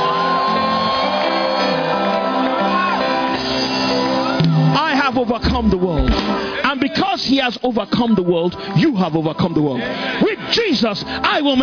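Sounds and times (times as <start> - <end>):
audience shouting and cheering: 0.0 - 7.5
speech: 5.1 - 11.6.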